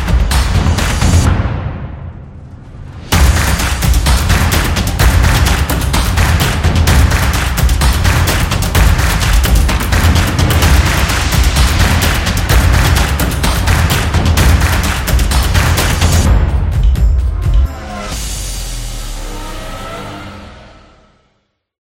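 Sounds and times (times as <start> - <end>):
percussion claps: 0.0 - 1.3, 3.2 - 16.9.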